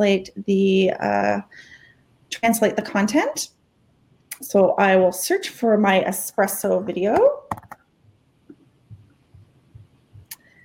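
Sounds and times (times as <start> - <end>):
speech: 0.0 - 1.7, 2.3 - 3.6, 4.4 - 7.7
computer mouse clicking: 7.5 - 7.8.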